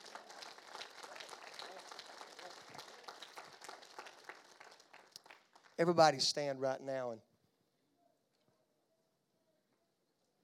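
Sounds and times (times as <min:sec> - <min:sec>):
audience applause: 0:00.0 - 0:06.3
speech: 0:05.8 - 0:07.3.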